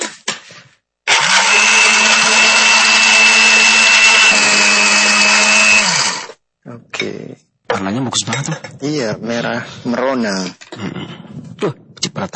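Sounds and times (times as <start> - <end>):
blender blending fruit juice: 1.1 - 6.4
speech: 8.1 - 11.0, 11.6 - 12.3.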